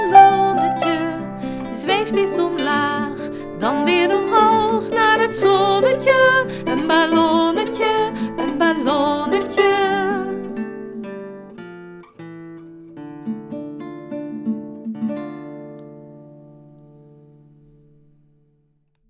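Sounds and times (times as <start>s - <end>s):
harp playing: 0.0s - 10.5s
guitar playing: 0.0s - 18.5s.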